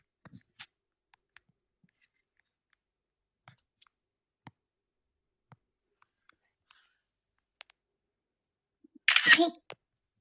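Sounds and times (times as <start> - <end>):
camera shutter clicking while photographing a pet sheet on the floor: 9.1 - 9.4
speech: 9.4 - 9.6.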